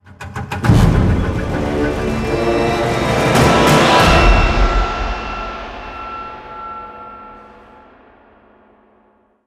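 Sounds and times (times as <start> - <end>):
combat intro music: 0.0 - 7.4.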